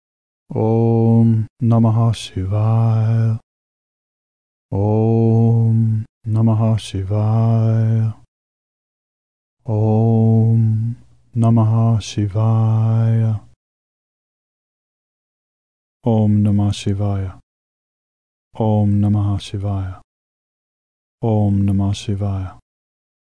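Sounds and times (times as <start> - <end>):
mantra chanting: 0.5 - 3.4, 4.7 - 8.3, 9.6 - 13.6, 16.0 - 17.4, 18.6 - 20.1, 21.2 - 22.6.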